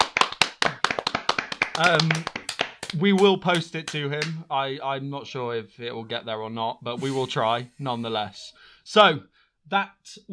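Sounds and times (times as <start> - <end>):
clapping and cheering: 0.0 - 4.4
speech: 1.8 - 10.3.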